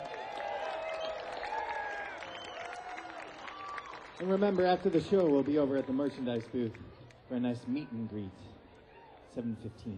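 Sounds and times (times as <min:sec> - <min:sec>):
cheers and whistles: 0:00.0 - 0:04.7
audience applause: 0:00.0 - 0:06.8
speech: 0:04.2 - 0:08.5, 0:09.3 - 0:09.9.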